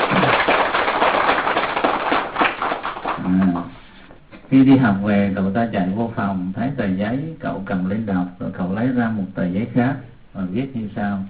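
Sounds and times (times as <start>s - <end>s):
crowd clapping: 0.0s - 3.7s
speech: 4.5s - 11.2s.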